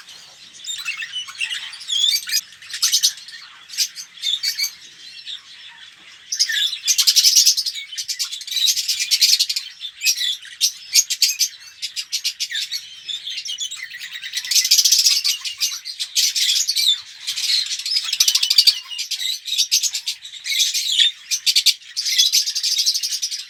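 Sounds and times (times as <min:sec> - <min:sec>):
red-rumped parrot Psephotus haematonotus song of sharp chirping and rattling trills: 0:00.0 - 0:23.4.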